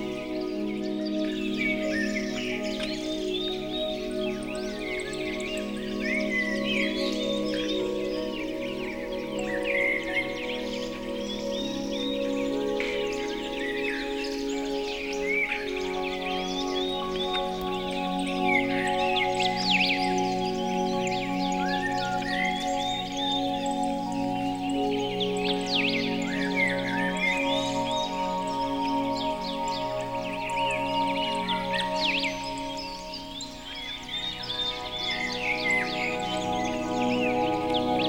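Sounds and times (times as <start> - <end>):
several birds singing: 0.0 - 38.0
soft continuous music drone: 0.0 - 38.0.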